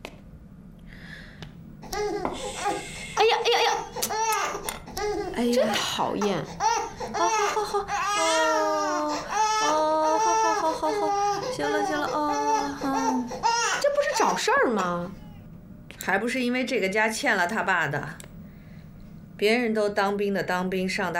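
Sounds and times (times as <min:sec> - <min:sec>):
baby crying: 0:01.8 - 0:02.8, 0:03.5 - 0:15.0
speech: 0:05.4 - 0:06.6, 0:07.2 - 0:09.2, 0:10.6 - 0:13.5, 0:14.2 - 0:15.2, 0:16.0 - 0:18.2, 0:19.4 - 0:21.1.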